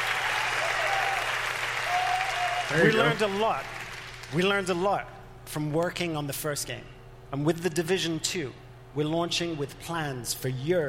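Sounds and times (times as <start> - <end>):
audience clapping at a Division 2 game announcement: 0.0 - 4.4
speech: 2.7 - 10.8.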